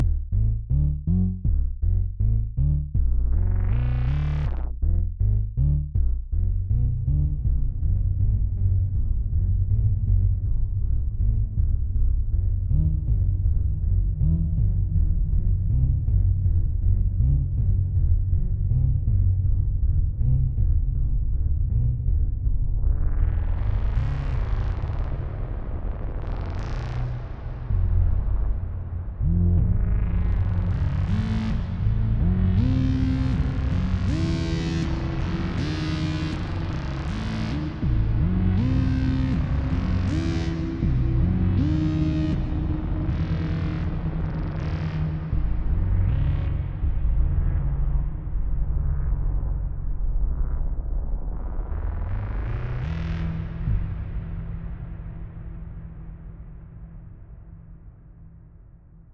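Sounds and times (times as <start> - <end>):
reverberant atmospheric bass: 0.0 - 59.1.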